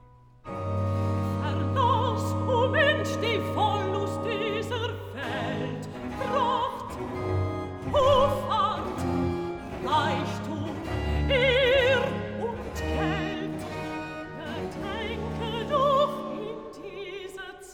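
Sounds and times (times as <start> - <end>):
alto singing cantata recitative: 0.5 - 17.3.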